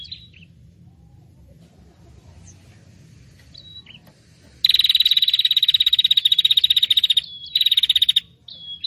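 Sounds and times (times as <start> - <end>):
Prinia rattle: 3.2 - 8.2.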